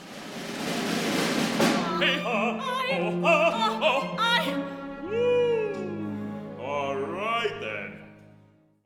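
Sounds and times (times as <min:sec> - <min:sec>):
wedding string quartet playing: 0:01.6 - 0:08.4.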